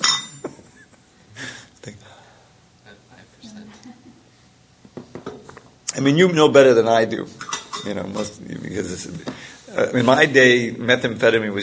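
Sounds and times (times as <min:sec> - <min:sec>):
glass of water being set down: 0:00.0 - 0:00.6
speech: 0:06.0 - 0:11.6.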